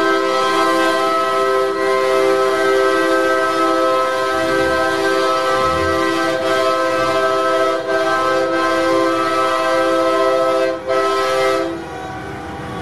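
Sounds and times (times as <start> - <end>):
truck horns honking in city streets: 0.0 - 12.7.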